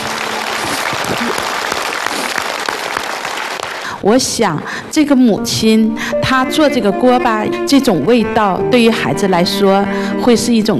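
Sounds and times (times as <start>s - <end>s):
large audience applause: 0.0s - 4.0s
speech: 4.0s - 10.7s.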